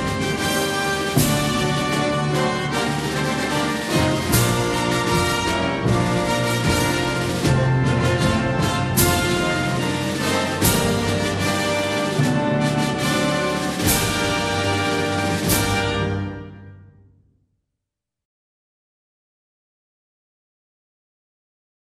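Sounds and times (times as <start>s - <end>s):
instrumental national anthem: 0.0s - 17.2s.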